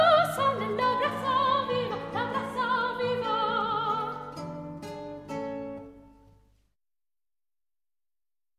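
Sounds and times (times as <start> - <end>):
guitar concert music: 0.2 - 6.4.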